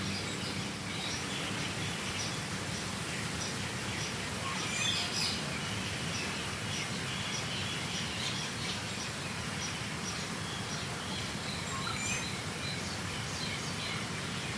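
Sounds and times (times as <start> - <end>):
Sunday morning nature sounds: 0.0 - 14.5.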